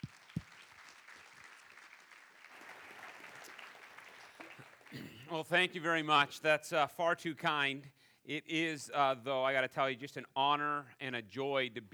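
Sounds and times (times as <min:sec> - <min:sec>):
audience clapping hands in welcome: 0:00.0 - 0:05.8
speech: 0:05.3 - 0:11.9.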